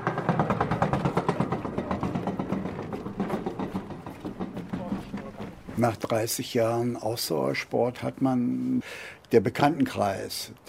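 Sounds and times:
rowing boat pulled over a steel roller onto a jetty: 0.0 - 7.0
speech: 5.8 - 10.6.

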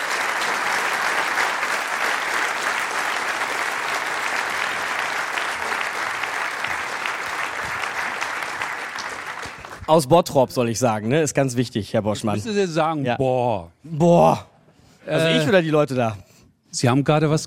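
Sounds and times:
applause: 0.0 - 10.2
speech: 9.9 - 14.5, 15.1 - 17.4.

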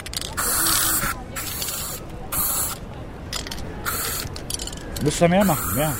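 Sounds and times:
eco chalk spray can spraying: 0.4 - 2.8, 3.8 - 4.4, 5.4 - 5.9
speech: 5.0 - 5.9.

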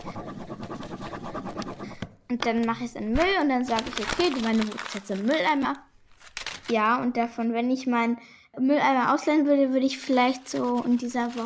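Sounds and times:
scribbling hard on paper: 0.0 - 2.0
speech: 2.3 - 5.9, 6.7 - 11.4.

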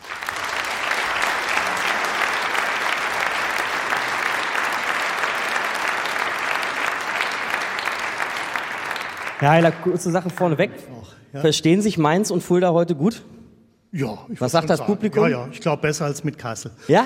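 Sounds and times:
audience applause for guest on stage: 0.0 - 10.7
speech: 9.4 - 13.3, 13.9 - 17.0.

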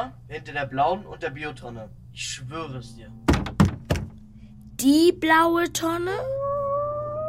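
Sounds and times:
speech: 0.0 - 3.6, 4.8 - 6.4
wolf howling inside a bin: 2.3 - 3.3, 6.1 - 7.2.

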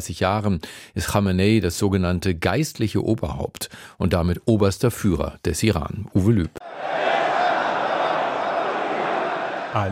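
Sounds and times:
speech: 0.0 - 7.0, 9.7 - 9.9
thousands of people cheering in the Imam Khomeini Mosque in Tehran: 6.6 - 9.9.

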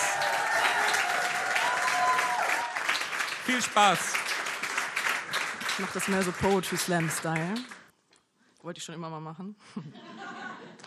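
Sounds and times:
faint whistles and cheers: 0.0 - 2.8
roaring applause from a large crowd: 0.0 - 7.9
speech: 3.5 - 4.3, 5.8 - 7.8, 8.6 - 10.4
laughter: 9.7 - 10.8.

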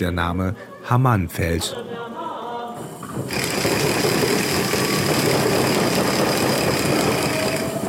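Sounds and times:
speech: 0.0 - 2.1, 3.2 - 3.9
Purim noisemakers (ratchets) rattling in synagogue: 3.1 - 7.8.

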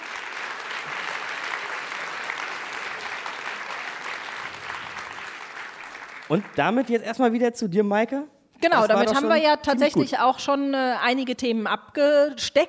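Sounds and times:
audience applause: 0.0 - 7.0
speech: 6.3 - 12.6.

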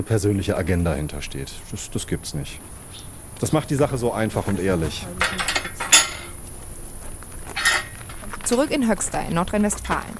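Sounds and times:
speech: 0.0 - 5.7, 8.5 - 10.1
metal horse paddock gate unlatched and swung open: 3.4 - 9.2.

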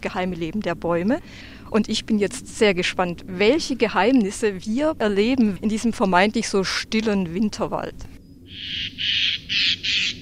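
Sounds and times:
speech: 0.0 - 10.1
faint low rumble: 0.0 - 10.2
Eurasian jay alarm call: 8.4 - 10.2.

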